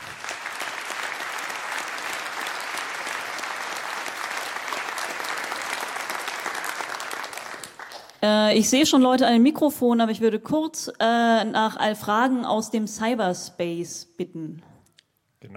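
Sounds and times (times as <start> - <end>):
audience applause: 0.0 - 8.2
speech: 8.2 - 14.7.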